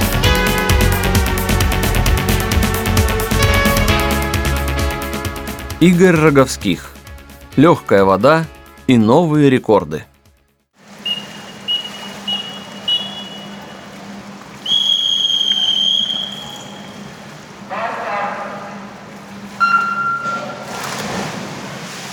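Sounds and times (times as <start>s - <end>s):
start signal of a swimming race: 0.2s - 2.2s, 2.9s - 4.9s, 10.9s - 21.2s
speech: 5.8s - 7.0s, 7.6s - 10.1s.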